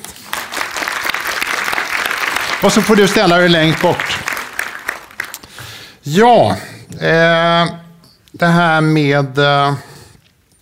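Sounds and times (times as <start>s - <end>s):
applause from a group: 0.0s - 5.9s
speech: 2.6s - 4.3s, 6.1s - 7.8s, 8.4s - 9.9s.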